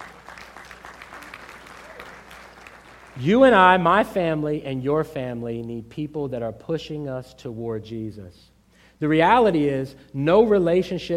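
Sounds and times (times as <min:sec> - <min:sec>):
audience clapping hands: 0:00.0 - 0:03.7
speech: 0:03.2 - 0:11.1.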